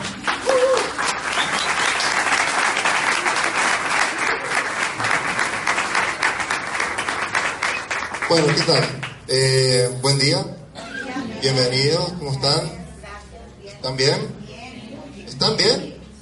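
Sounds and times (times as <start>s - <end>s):
audience applause: 0.0s - 9.2s
speech: 8.3s - 10.6s, 11.4s - 12.8s, 13.8s - 14.4s, 15.4s - 15.9s.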